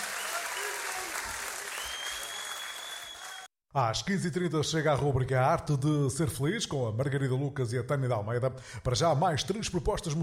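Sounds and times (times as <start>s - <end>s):
audience applause: 0.0s - 3.5s
speech: 3.7s - 10.2s.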